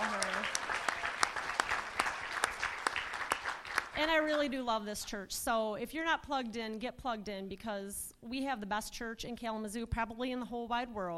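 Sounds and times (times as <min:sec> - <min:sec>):
audience applause: 0:00.0 - 0:04.0
speech: 0:04.0 - 0:11.1.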